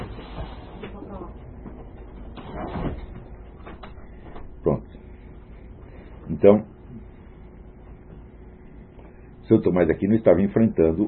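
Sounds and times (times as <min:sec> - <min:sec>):
door being opened for a dog: 0:01.8 - 0:04.6
speech: 0:06.4 - 0:06.7, 0:09.5 - 0:11.0.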